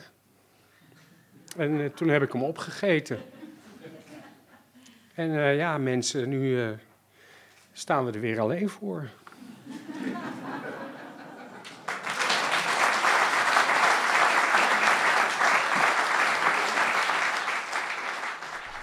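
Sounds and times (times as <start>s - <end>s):
speech: 1.6s - 3.4s, 5.2s - 6.9s, 7.8s - 9.2s
laughter: 3.1s - 4.8s, 9.4s - 17.0s
theatre audience applause: 11.0s - 18.8s.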